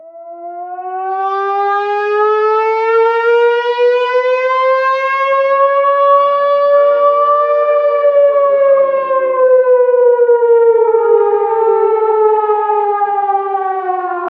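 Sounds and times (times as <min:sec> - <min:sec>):
air raid siren: 0:00.0 - 0:14.3.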